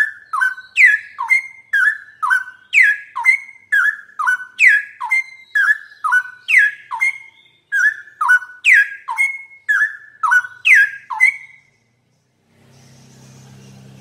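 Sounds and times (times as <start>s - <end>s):
straw-headed bulbul song: 0.0s - 13.9s.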